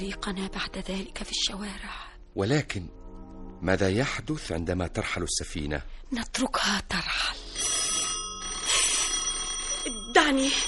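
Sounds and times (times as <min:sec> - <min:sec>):
speech: 0:00.0 - 0:03.0, 0:03.6 - 0:07.4, 0:10.3 - 0:10.6
telephone ringing: 0:07.4 - 0:10.6.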